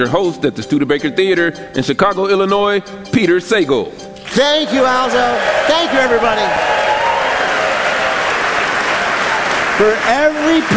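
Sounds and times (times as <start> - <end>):
speech: 0.0 - 6.9, 9.8 - 10.7
theater audience applauding at the Studebaker Theater in Chicago: 4.2 - 10.7.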